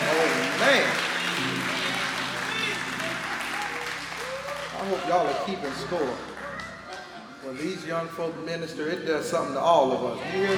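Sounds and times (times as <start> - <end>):
church congregation applauding young people: 0.0 - 7.8
speech: 5.1 - 6.3, 7.4 - 10.5.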